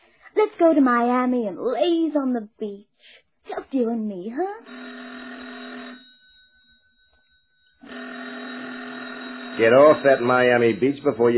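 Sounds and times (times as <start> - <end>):
speech: 0.4 - 5.2, 9.6 - 11.3
telephone ringing: 4.4 - 11.3.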